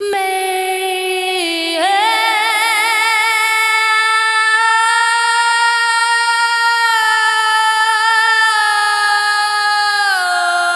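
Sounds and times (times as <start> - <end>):
woman singing dance vocals: 0.0 - 10.7.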